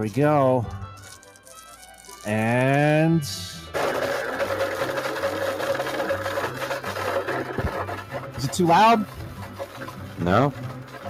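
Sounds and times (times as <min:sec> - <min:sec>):
speech: 0:00.0 - 0:00.8, 0:02.2 - 0:04.1, 0:08.4 - 0:09.2, 0:10.2 - 0:10.6
blender running in the studio: 0:03.5 - 0:11.0.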